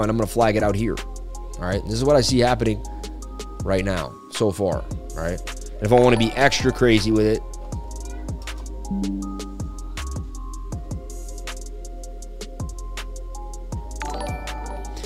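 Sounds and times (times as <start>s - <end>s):
speech: 0.0s - 3.0s, 3.6s - 7.5s, 8.9s - 9.3s
Windows input switch notification chimes: 8.9s - 9.8s.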